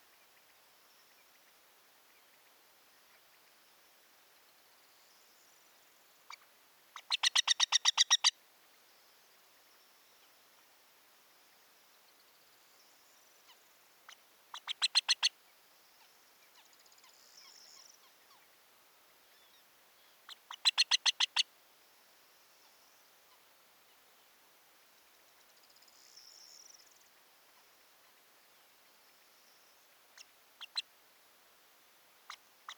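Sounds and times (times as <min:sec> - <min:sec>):
Montagu's harrier chattering call: 0:07.0 - 0:08.3, 0:20.4 - 0:21.4.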